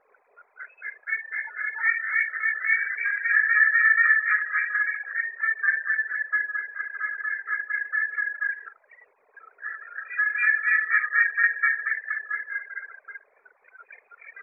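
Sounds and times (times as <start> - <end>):
duck quacking: 0.6 - 8.6, 9.6 - 13.0.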